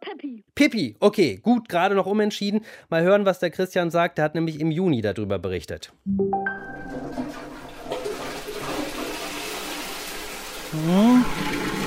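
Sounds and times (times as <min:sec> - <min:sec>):
speech: 0:00.2 - 0:07.4, 0:10.7 - 0:11.4
toilet flushing: 0:06.5 - 0:11.8.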